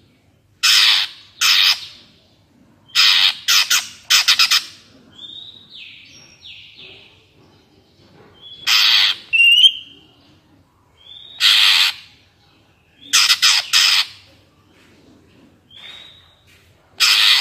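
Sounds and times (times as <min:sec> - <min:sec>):
greater green leafbird rasping bursts and falling whistles: 0:00.6 - 0:02.0, 0:02.9 - 0:04.9, 0:08.4 - 0:09.9, 0:11.1 - 0:12.2, 0:13.0 - 0:14.3, 0:17.0 - 0:17.4.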